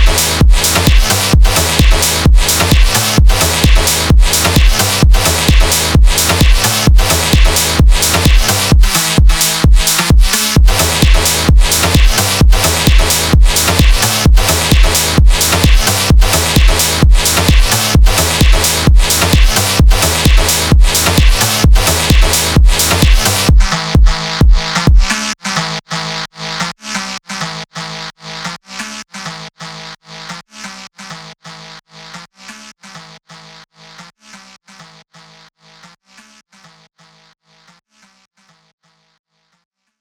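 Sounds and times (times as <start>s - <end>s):
phonk track: 0.0s - 26.3s.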